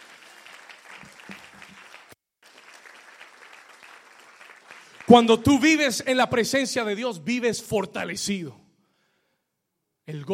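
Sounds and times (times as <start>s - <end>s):
audience applause: 0.0s - 5.4s
speech: 5.1s - 8.6s.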